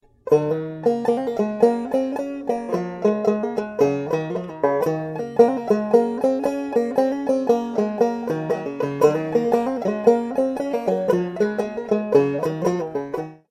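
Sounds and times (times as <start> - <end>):
instrumental music: 0.0 - 13.4.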